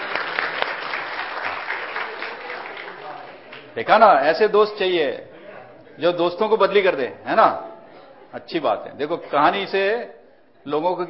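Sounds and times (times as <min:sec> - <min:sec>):
audience applause: 0:00.0 - 0:03.8
speech: 0:03.8 - 0:05.3, 0:06.0 - 0:07.7, 0:08.3 - 0:11.0.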